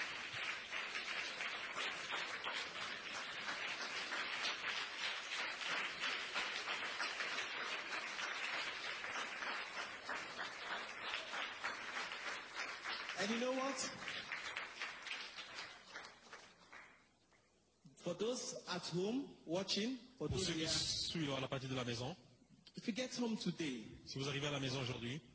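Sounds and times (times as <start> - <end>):
audience clapping: 0.0 - 17.5
speech: 13.3 - 14.1, 18.1 - 25.3.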